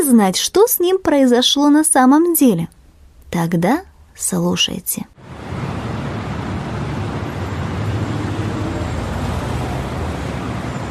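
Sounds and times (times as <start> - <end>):
speech: 0.0 - 5.4
noisy big-city street traffic: 5.1 - 10.8.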